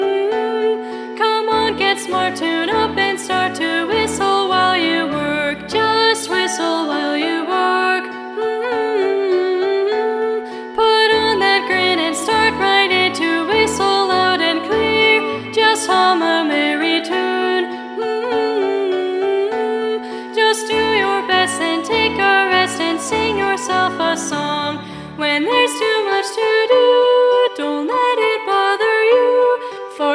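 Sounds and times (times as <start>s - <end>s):
predominant alto voice: 0.0s - 30.1s.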